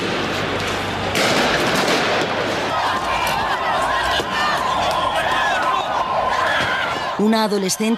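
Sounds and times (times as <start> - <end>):
roaring, shouting crowd at a street riot in central Madrid: 1.0 - 7.9
sharp bangs like police gunshots: 1.1 - 2.6
speech: 7.2 - 7.9.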